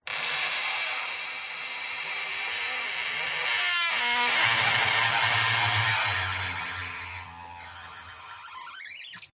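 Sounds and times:
wood creaking and squeaking under stress: 0:00.0 - 0:09.3.

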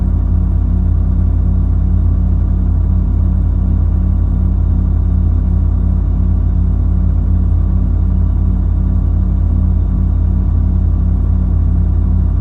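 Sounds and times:
computer case hum through a contact mic: 0:00.0 - 0:12.4.

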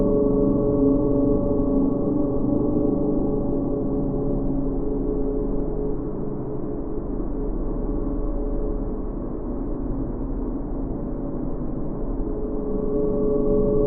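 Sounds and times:
cold dark sinister wind: 0:00.0 - 0:13.8
sinister LFE drone: 0:00.0 - 0:13.8.

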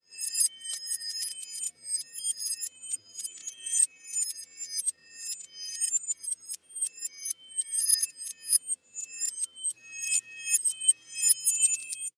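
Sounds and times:
reversed twinkle sound design effect: 0:02.4 - 0:12.1.

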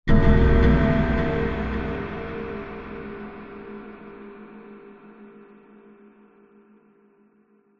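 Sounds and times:
dark scary cinematic horror stab: 0:00.1 - 0:04.4.

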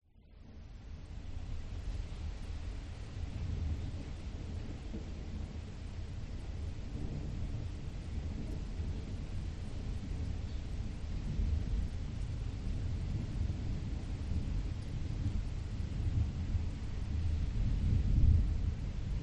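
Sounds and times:
light rain: 0:00.1 - 0:19.2
distant thunderstorm heard from inside home with closed windows: 0:03.3 - 0:19.2.

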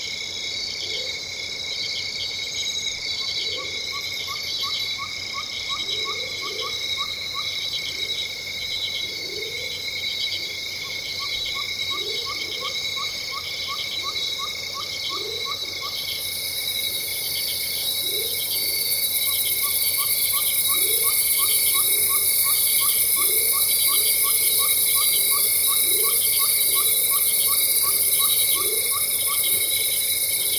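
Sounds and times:
loud insects in a tropical rainforest in Venezuela: 0:00.0 - 0:30.5.

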